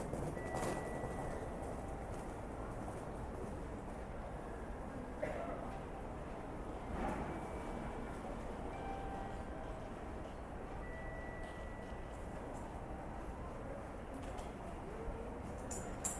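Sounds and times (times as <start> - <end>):
trains rumbling in a train station in Japan: 0.0 - 15.6
thin high ringing tones: 0.2 - 2.2, 10.8 - 12.4.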